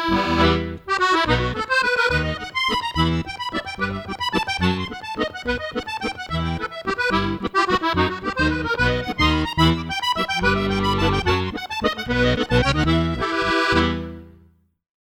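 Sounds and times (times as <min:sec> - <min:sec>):
musette music: 0:00.0 - 0:14.6.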